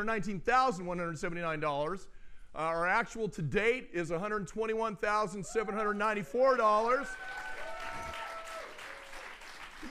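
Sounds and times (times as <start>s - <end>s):
speech: 0.0s - 7.4s
audience applause: 6.9s - 9.9s.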